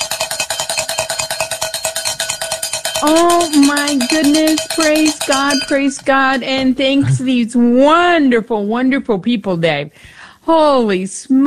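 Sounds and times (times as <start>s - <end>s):
cowbells ringing: 0.0s - 6.4s
speech: 3.0s - 11.4s.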